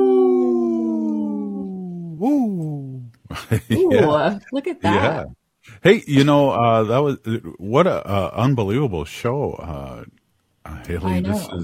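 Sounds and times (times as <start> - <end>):
wolf howling: 0.0 - 2.3
laughter: 3.3 - 5.2
speech: 3.3 - 11.6.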